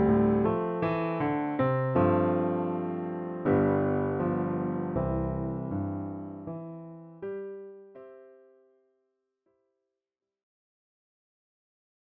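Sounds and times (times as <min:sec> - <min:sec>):
low piano chord in C: 0:00.0 - 0:08.6.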